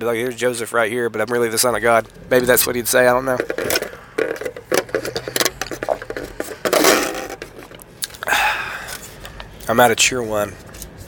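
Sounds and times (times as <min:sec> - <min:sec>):
speech: 0:00.0 - 0:04.0, 0:09.7 - 0:10.7
styrofoam cup being handled, squeaking: 0:03.4 - 0:07.8.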